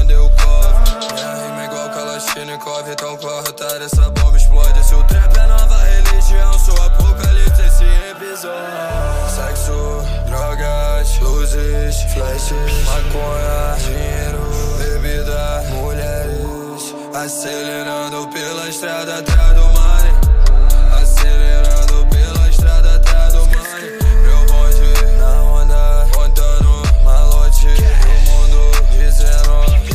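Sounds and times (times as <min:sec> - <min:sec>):
deep bass: 0:00.0 - 0:01.0, 0:04.0 - 0:08.0, 0:08.9 - 0:16.6, 0:19.3 - 0:29.9.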